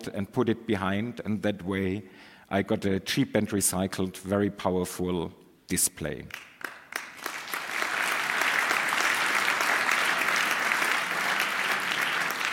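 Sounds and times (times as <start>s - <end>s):
speech: 0.0s - 6.8s
audience applause: 6.6s - 12.5s.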